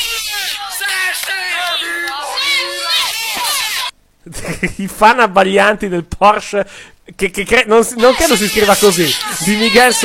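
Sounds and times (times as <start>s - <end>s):
children cheering and shouting as a Porsche Cayenne arrives in the village: 0.0s - 3.9s, 8.0s - 10.0s
speech: 4.6s - 10.0s.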